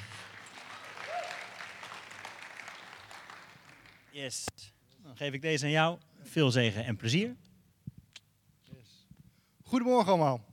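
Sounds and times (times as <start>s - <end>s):
audience applause welcoming a speaker: 0.0s - 4.2s
speech: 4.2s - 7.4s, 9.7s - 10.5s.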